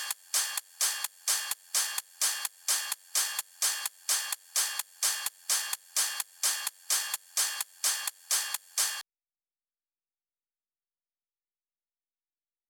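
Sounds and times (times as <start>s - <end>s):
128 BPM top loop of drums and percussion: 0.0s - 9.0s.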